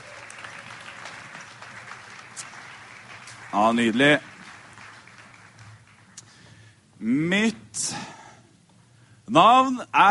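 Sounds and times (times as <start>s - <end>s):
audience applause for the choir: 0.0s - 6.6s
speech: 3.5s - 4.3s, 9.3s - 10.0s.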